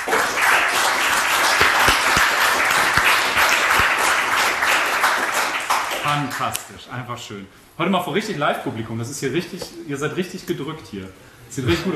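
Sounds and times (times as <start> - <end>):
audience applause: 0.0 - 6.4
speech: 6.1 - 11.9.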